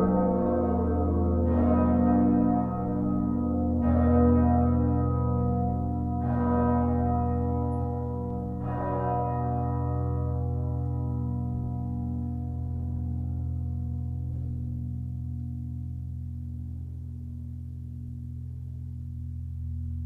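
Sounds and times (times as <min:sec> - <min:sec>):
cathedral bell tower bells ringing: 0:00.0 - 0:14.9.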